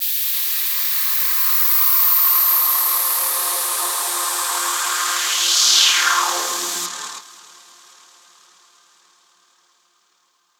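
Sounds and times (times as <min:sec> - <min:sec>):
noise effect: 0:01.0 - 0:08.6.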